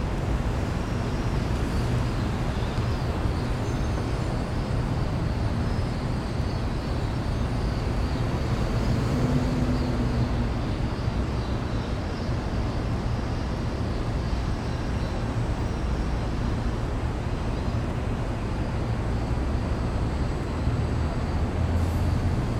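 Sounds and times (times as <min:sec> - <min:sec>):
city alley ambience: 0:00.0 - 0:22.5.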